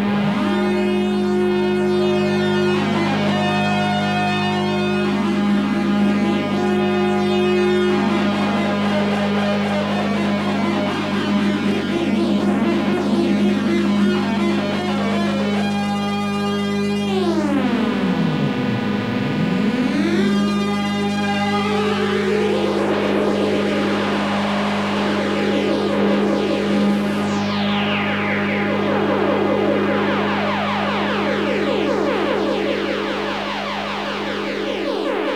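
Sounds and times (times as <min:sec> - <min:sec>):
keyboard solo: 0:00.0 - 0:35.3.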